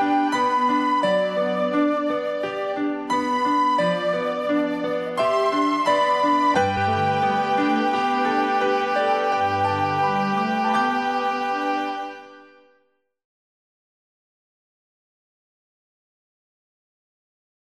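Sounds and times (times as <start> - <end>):
easy listening and classical music: 0.0 - 12.8.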